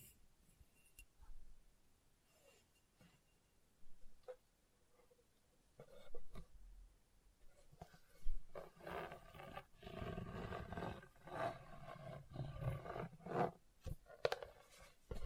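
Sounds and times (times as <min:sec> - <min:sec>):
scratching across a hard bumpy surface: 0:07.8 - 0:15.2.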